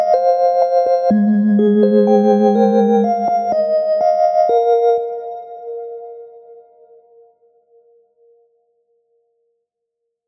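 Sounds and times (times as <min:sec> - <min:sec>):
R and B melodies: 0:00.1 - 0:06.1.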